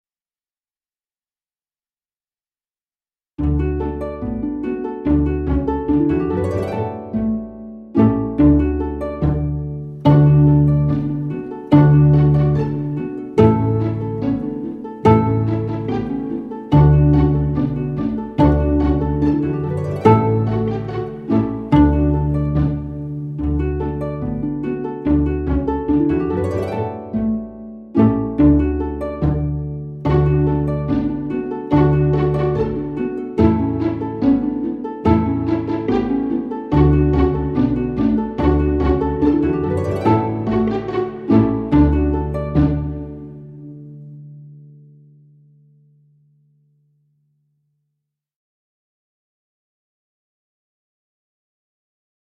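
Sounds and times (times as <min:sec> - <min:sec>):
violins skipping: 0:03.4 - 0:43.8.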